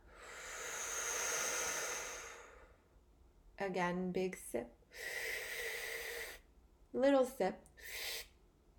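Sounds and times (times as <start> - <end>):
exhale through the mouth: 0.0 - 2.8, 5.0 - 6.4, 7.8 - 8.3
speech: 3.6 - 5.2, 6.9 - 8.1.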